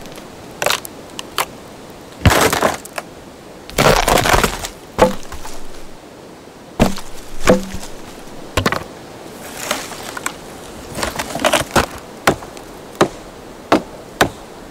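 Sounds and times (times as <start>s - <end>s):
wood cracks: 0.0s - 1.5s, 2.2s - 3.1s, 3.7s - 6.0s, 6.8s - 13.1s
trees creaking: 0.0s - 6.0s, 6.7s - 14.6s
forest textures: 0.0s - 14.6s
wood impacts: 2.2s - 3.0s, 3.7s - 6.0s, 6.8s - 8.9s, 9.6s - 14.4s.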